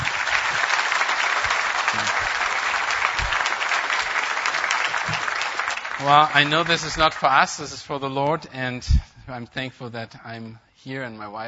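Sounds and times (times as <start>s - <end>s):
audience applauding: 0.0s - 7.9s
speech: 6.0s - 11.4s.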